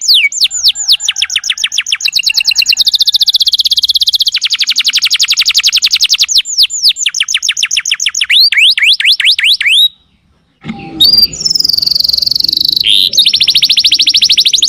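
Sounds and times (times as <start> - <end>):
lovebird lure call shrill chirps in fast trills: 0.0 - 10.0, 10.7 - 14.6.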